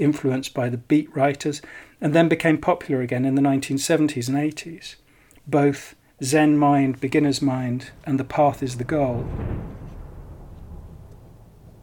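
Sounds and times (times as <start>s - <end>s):
speech: 0.0s - 9.7s
thunder: 7.2s - 11.8s.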